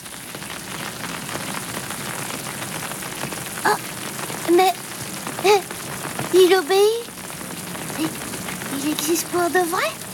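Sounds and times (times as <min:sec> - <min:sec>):
gentle rain falling: 0:00.0 - 0:10.1
speech: 0:06.5 - 0:07.0, 0:09.0 - 0:10.0.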